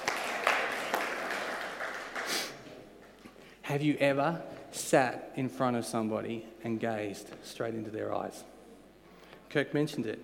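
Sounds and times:
crowd applause: 0:00.0 - 0:02.6
speech: 0:03.7 - 0:08.5, 0:09.5 - 0:10.2.

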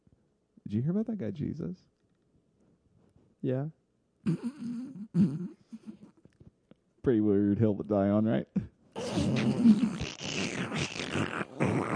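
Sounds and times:
speech: 0:00.7 - 0:02.0, 0:03.4 - 0:06.1, 0:07.0 - 0:10.1
snorting backwards sneeze: 0:09.0 - 0:11.9.

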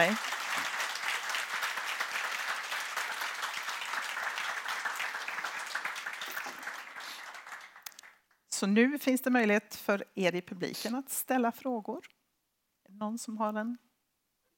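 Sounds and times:
speech: 0:00.0 - 0:00.4, 0:08.6 - 0:12.2, 0:13.0 - 0:13.9
audience applauding: 0:00.0 - 0:08.4.

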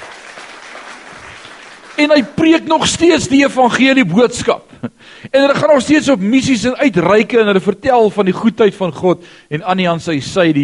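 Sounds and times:
audience applause: 0:00.0 - 0:02.3
speech: 0:02.0 - 0:10.6.

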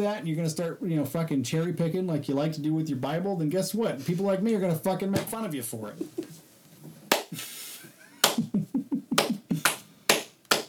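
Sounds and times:
speech: 0:00.0 - 0:06.3
slow clap: 0:07.1 - 0:07.4, 0:08.2 - 0:10.6.

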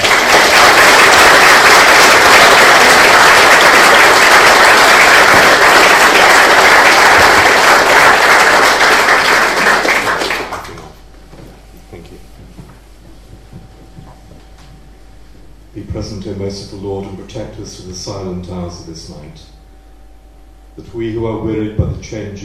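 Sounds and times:
audience applause: 0:00.0 - 0:11.0
speech: 0:16.5 - 0:19.6, 0:20.8 - 0:22.4.

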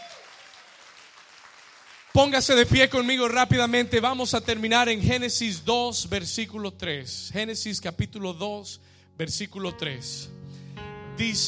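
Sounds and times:
audience applause: 0:00.0 - 0:02.6
speech: 0:02.2 - 0:10.4, 0:11.2 - 0:11.4.

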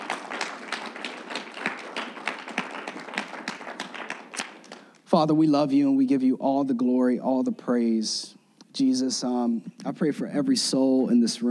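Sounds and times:
audience hand clapping: 0:00.0 - 0:05.0
speech: 0:05.2 - 0:11.4.

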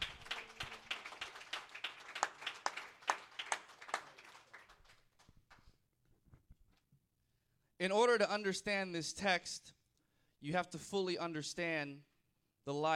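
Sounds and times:
audience clapping hands: 0:00.0 - 0:05.8
speech: 0:07.8 - 0:09.8, 0:10.4 - 0:12.1, 0:12.7 - 0:12.9.

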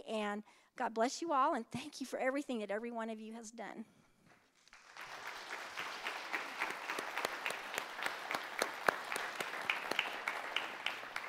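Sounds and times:
speech: 0:00.1 - 0:04.0
audience applause: 0:04.7 - 0:11.2.

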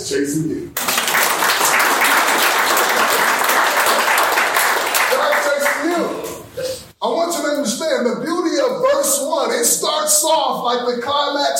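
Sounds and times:
speech: 0:00.1 - 0:01.2, 0:07.0 - 0:11.5
morning Bible study audience clapping: 0:00.8 - 0:06.3.

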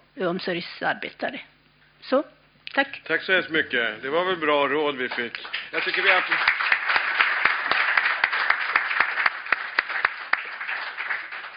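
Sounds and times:
speech: 0:00.2 - 0:06.6
audience applause: 0:05.0 - 0:11.5.

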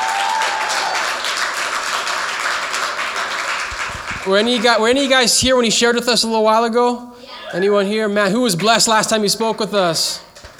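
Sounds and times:
audience clapping hands: 0:00.0 - 0:05.7, 0:08.4 - 0:09.7, 0:10.4 - 0:10.5
speech: 0:04.2 - 0:10.3.

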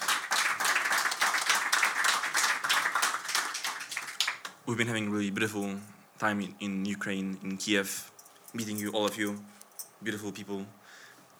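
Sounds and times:
audience clapping: 0:00.0 - 0:04.6
speech: 0:04.7 - 0:10.8.

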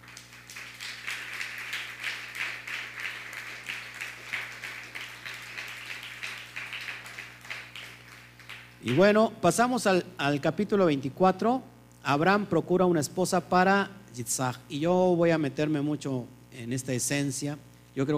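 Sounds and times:
audience applause: 0:00.0 - 0:09.2
speech: 0:08.8 - 0:18.1.

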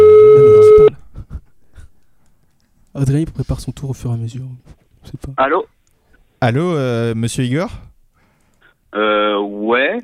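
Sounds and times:
telephone ringing tone: 0:00.0 - 0:00.9
speech: 0:03.1 - 0:05.8, 0:06.4 - 0:07.9, 0:08.9 - 0:10.0.

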